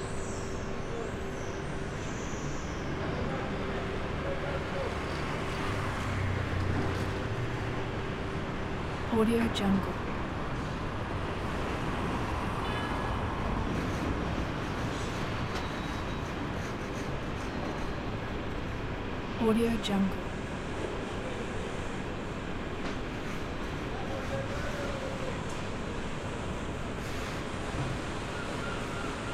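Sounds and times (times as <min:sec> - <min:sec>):
city traffic in background: 0:00.0 - 0:29.3
construction site industrial sounds: 0:00.0 - 0:29.3.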